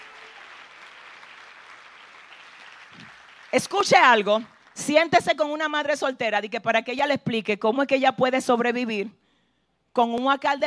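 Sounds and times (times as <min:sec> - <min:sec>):
audience applause: 0:00.0 - 0:03.8
speech: 0:03.0 - 0:09.2, 0:10.0 - 0:10.6.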